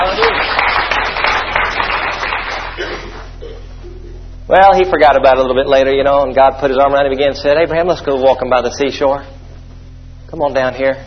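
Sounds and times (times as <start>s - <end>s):
audience clapping: 0.0s - 3.4s
speech: 4.6s - 9.4s, 10.3s - 11.0s.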